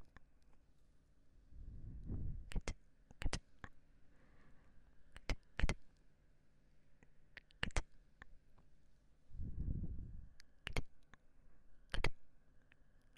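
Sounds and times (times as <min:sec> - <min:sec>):
faint steady hum: 0:00.0 - 0:13.1
sharp wet mouth clicks and smacks: 0:02.5 - 0:03.4, 0:05.1 - 0:05.8, 0:07.4 - 0:08.0, 0:10.4 - 0:11.2, 0:11.9 - 0:12.2.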